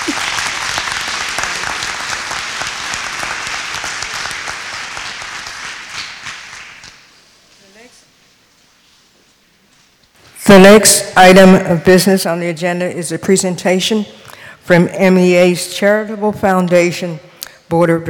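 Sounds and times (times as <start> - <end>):
crowd audience applause: 0.0 - 7.0
speech: 10.6 - 18.0.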